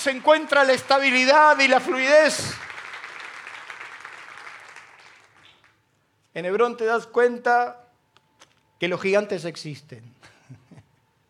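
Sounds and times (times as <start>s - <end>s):
speech: 0.0s - 2.7s, 6.4s - 7.8s, 8.8s - 10.6s
audience applause: 0.0s - 5.8s.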